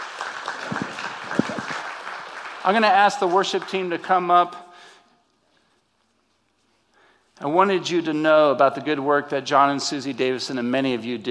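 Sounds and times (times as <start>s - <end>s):
church congregation applauding after a talk about orphanage work: 0.0s - 4.5s
speech: 2.6s - 4.6s, 7.4s - 11.2s.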